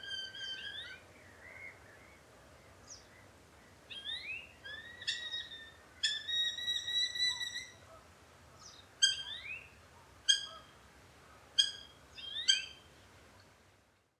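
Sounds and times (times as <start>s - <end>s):
Eurasian hobby calling: 0.0s - 2.1s, 3.9s - 7.8s, 8.6s - 9.7s, 10.3s - 10.8s, 11.6s - 12.9s.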